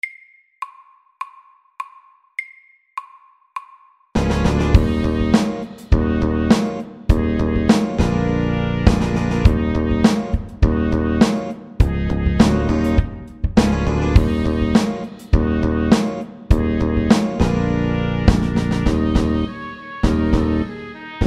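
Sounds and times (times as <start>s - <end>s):
funky music at 102 BPM: 4.2s - 21.2s.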